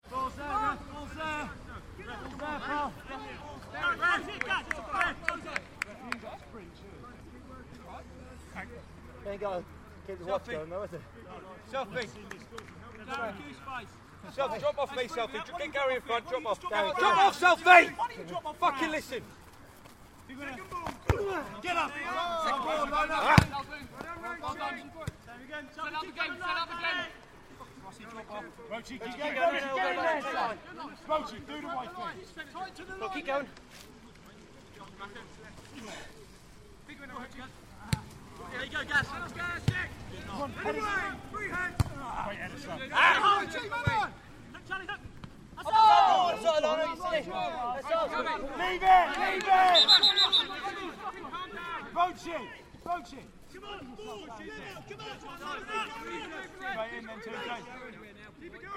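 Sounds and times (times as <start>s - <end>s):
team noise: 0.0s - 58.7s.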